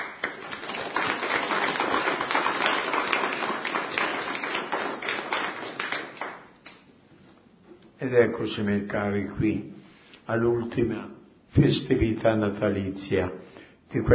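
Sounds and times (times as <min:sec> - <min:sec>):
audience applause: 0:00.0 - 0:06.5
speech: 0:08.0 - 0:14.1.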